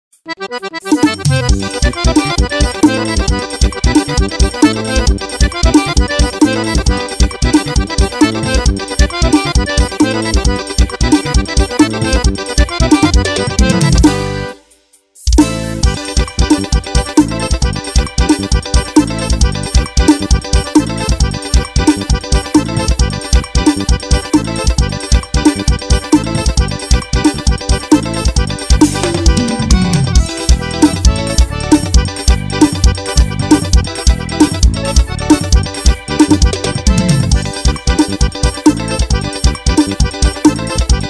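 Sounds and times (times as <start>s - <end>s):
keyboard backing track: 0.2s - 41.0s.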